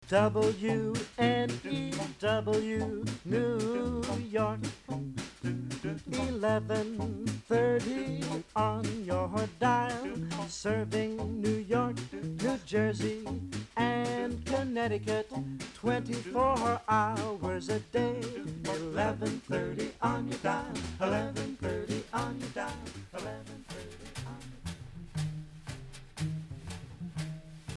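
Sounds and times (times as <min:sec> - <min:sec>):
doo wop singing: 0:00.0 - 0:24.6.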